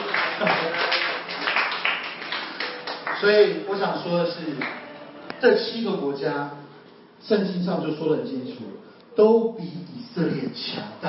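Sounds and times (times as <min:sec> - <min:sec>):
audience applause: 0:00.0 - 0:03.6
speech: 0:03.2 - 0:04.8, 0:05.4 - 0:06.6, 0:07.2 - 0:11.0.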